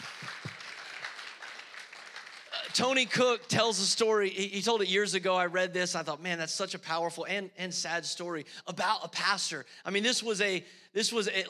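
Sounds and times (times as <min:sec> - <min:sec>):
audience applause: 0:00.0 - 0:03.4
speech: 0:02.8 - 0:11.4.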